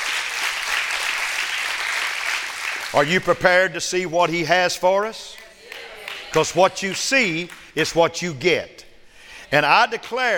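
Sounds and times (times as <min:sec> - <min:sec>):
audience clapping hands: 0:00.0 - 0:03.4, 0:05.3 - 0:07.8
speech: 0:02.9 - 0:05.4, 0:06.3 - 0:08.8, 0:09.5 - 0:10.3.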